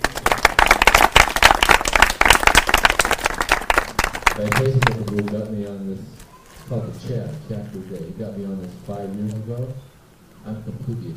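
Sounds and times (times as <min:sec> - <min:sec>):
audience applause: 0:00.0 - 0:05.5
speech: 0:04.4 - 0:11.1.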